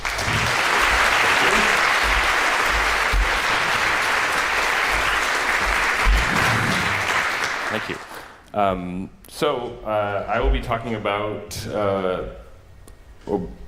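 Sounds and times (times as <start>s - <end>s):
audience applause: 0.0s - 8.4s
speech: 8.6s - 12.4s, 13.3s - 13.6s.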